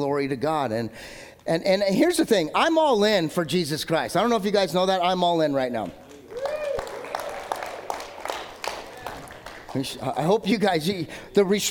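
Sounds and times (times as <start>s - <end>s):
speech: 0.0s - 6.0s, 9.7s - 11.6s
audience clapping: 5.8s - 10.4s.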